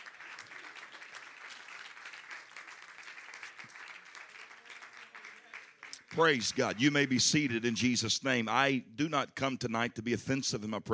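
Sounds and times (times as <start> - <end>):
audience clapping hands in praise: 0.0 - 7.3
speech: 6.2 - 10.9.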